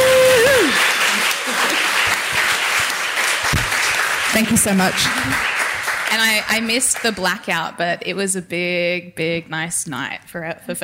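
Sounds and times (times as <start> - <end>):
crowd applauding: 0.0 - 7.6
speech: 4.4 - 10.8.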